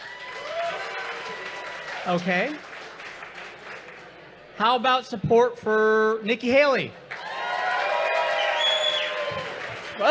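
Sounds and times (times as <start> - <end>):
audience applause: 0.0 - 4.1, 7.1 - 10.0
speech: 2.0 - 2.7, 4.6 - 7.0.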